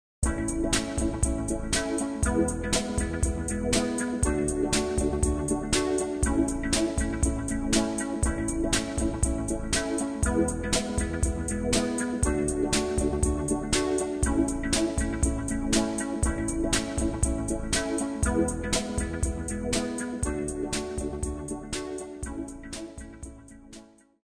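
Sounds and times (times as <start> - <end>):
guitar: 0.2 - 23.8.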